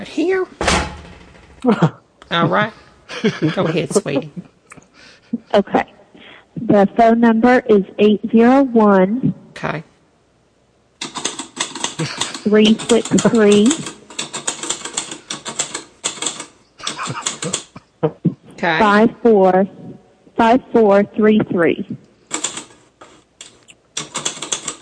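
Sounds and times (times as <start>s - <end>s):
speech: 0.1s - 0.8s, 1.6s - 4.5s, 5.3s - 5.9s, 6.6s - 9.9s, 12.0s - 13.9s, 18.0s - 22.0s
laughter: 1.6s - 4.5s, 12.0s - 13.6s, 16.8s - 18.5s
typewriter key strikes: 11.0s - 17.8s, 22.3s - 24.8s.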